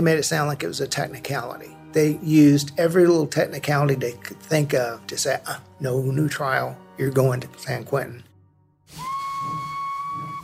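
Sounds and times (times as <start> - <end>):
speech: 0.0 - 8.3
steam train whistle: 8.9 - 10.4.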